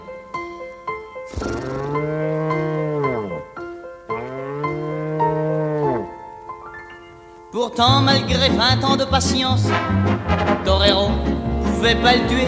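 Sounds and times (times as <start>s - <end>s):
bull mooing: 1.3s - 3.5s, 4.1s - 6.1s
speech: 7.6s - 12.4s.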